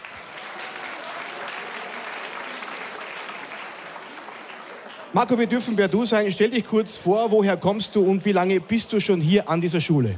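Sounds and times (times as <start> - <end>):
audience applause: 0.0 - 5.5
speech: 5.1 - 10.1.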